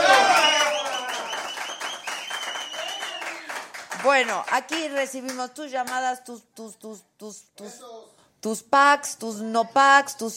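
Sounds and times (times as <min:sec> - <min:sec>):
applause: 0:00.0 - 0:05.4
speech: 0:04.0 - 0:10.3.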